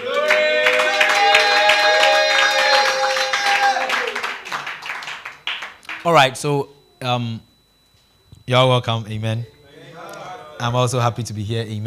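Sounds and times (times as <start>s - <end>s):
high cheering and whooping voices: 0.0s - 4.4s
audience clapping: 0.0s - 6.2s
speech: 6.0s - 7.5s, 8.5s - 9.6s, 10.6s - 11.8s.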